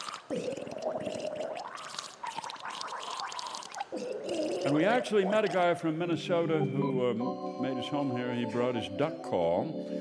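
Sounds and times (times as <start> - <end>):
person gargling a melody: 0.0 - 5.8
speech: 4.7 - 9.9.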